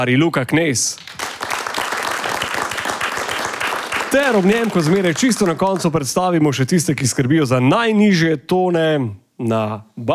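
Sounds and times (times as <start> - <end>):
speech: 0.0 - 1.2, 4.1 - 10.1
concert audience applauding a band: 1.0 - 6.2.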